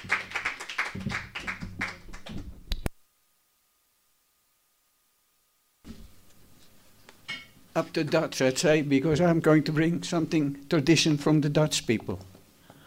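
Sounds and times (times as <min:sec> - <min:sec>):
crowd applause: 0:00.0 - 0:02.5
speech: 0:07.8 - 0:12.3.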